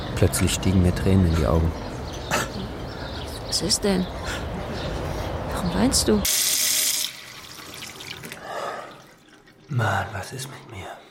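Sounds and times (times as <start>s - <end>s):
speech: 0.2s - 2.4s, 3.5s - 4.4s, 5.6s - 6.4s, 9.7s - 11.0s
water gushing from a tap into a sink in a toilet: 6.2s - 9.7s
someone splashing water on their face: 6.3s - 10.2s.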